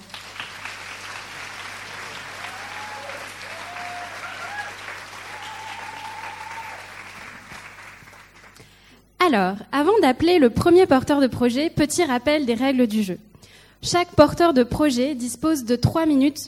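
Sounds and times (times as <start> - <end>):
audience applause: 0.0 - 8.6
speech: 9.3 - 16.4.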